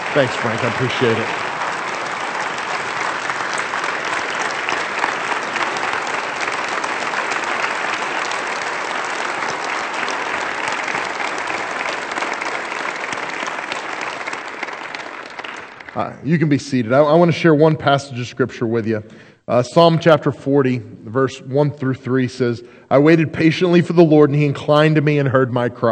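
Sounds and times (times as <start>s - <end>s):
audience applause: 0.0s - 17.3s
speech: 0.2s - 1.4s, 16.0s - 25.8s.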